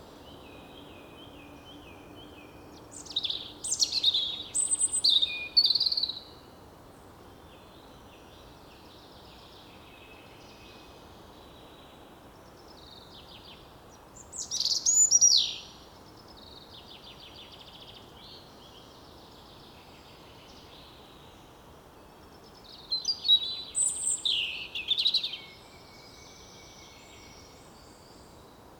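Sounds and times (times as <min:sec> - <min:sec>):
European robin singing: 0:00.0 - 0:06.5, 0:12.7 - 0:28.5
faint hiss: 0:00.0 - 0:28.7.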